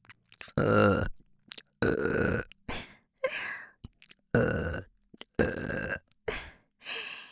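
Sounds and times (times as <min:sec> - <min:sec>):
person burping: 0:00.4 - 0:01.2, 0:01.8 - 0:02.6, 0:04.3 - 0:06.5.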